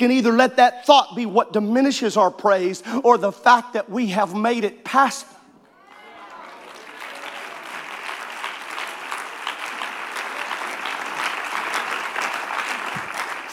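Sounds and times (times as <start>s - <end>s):
speech: 0.0s - 5.4s
crowd of people clapping: 5.8s - 13.5s.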